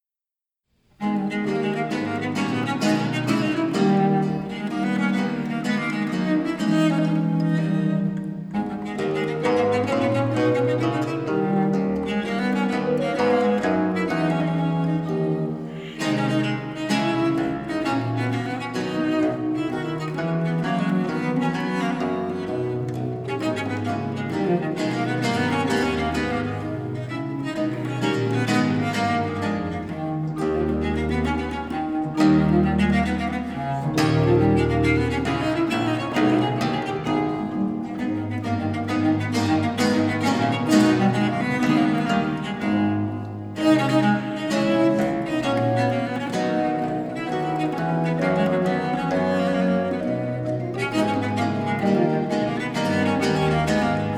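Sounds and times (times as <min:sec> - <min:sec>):
sonata gigue: 0:00.4 - 0:54.1.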